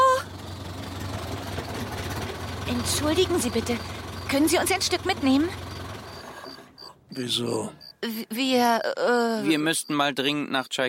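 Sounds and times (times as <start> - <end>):
car engine idling as car stops: 0.0 - 8.0
speech: 2.7 - 5.7, 7.2 - 10.8.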